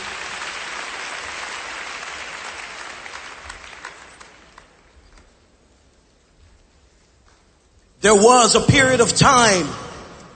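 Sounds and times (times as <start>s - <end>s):
audience clapping hands: 0.0s - 5.3s
speech: 8.0s - 9.8s.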